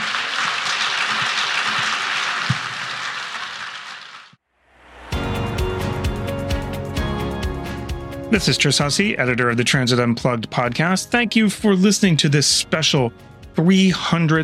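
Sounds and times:
audience applause: 0:00.0 - 0:04.4
music: 0:04.7 - 0:14.4
speech: 0:08.3 - 0:14.4.

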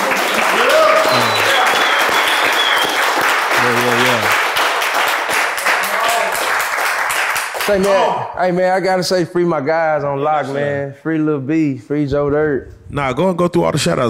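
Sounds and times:
audience applause: 0:00.0 - 0:08.1
speech: 0:07.7 - 0:14.0.

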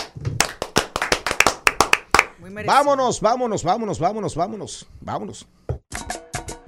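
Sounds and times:
hands clapping: 0:00.0 - 0:02.4
speech: 0:02.6 - 0:05.6.

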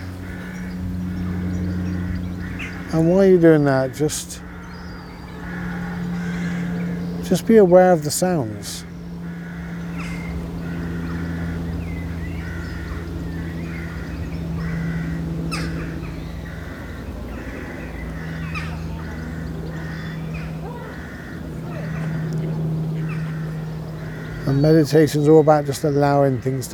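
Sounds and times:
ducks quacking at a pond: 0:00.0 - 0:26.7
speech: 0:02.9 - 0:04.5, 0:07.3 - 0:08.9, 0:24.6 - 0:26.7.

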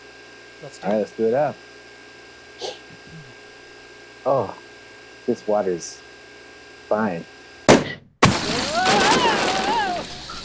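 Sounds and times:
speech: 0:00.6 - 0:01.7, 0:04.2 - 0:04.6, 0:05.3 - 0:06.1, 0:06.9 - 0:07.4
inflated sumo suit popping: 0:07.7 - 0:09.8.

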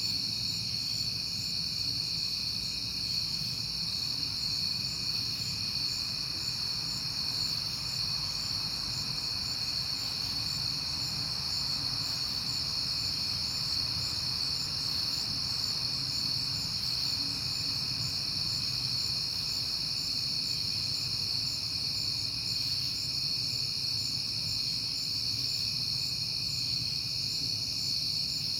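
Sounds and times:
cricket chorus trilling: 0:00.0 - 0:28.5.

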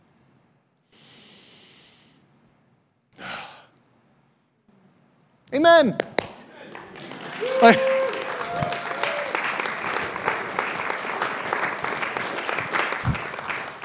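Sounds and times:
speech: 0:05.5 - 0:06.1, 0:07.6 - 0:07.9
crowd clapping: 0:06.0 - 0:13.8.

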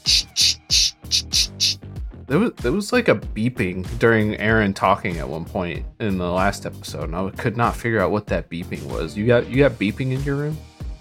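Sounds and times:
voice imitating paper sliding across a table: 0:00.0 - 0:01.8
speech: 0:02.3 - 0:10.7.

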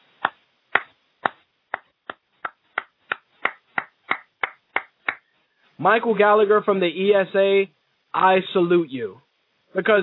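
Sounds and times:
single person's slow clap: 0:00.2 - 0:05.3
speech: 0:05.8 - 0:10.0.

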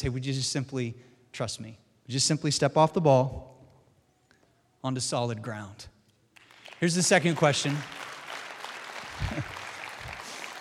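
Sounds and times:
speech: 0:00.0 - 0:03.5, 0:04.8 - 0:05.9, 0:06.8 - 0:08.1, 0:09.2 - 0:09.6
audience applause: 0:06.4 - 0:10.5.

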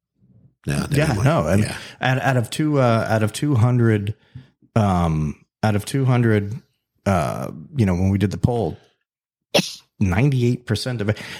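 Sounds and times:
speech: 0:00.6 - 0:08.9, 0:09.5 - 0:11.3
person sneezing: 0:09.6 - 0:09.8.

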